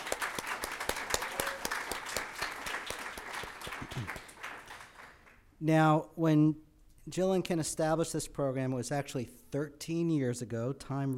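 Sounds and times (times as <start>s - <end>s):
audience applause: 0.0s - 5.4s
speech: 5.6s - 11.1s.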